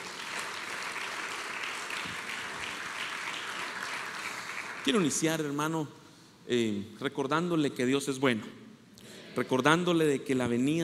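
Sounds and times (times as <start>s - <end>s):
audience applause: 0.0s - 5.2s
speech: 4.8s - 8.6s, 9.4s - 10.8s.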